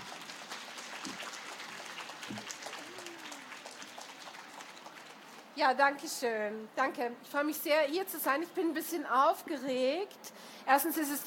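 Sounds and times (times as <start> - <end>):
audience applause: 0.0 - 5.5
faint whoop: 2.7 - 3.7
speech: 5.6 - 11.2.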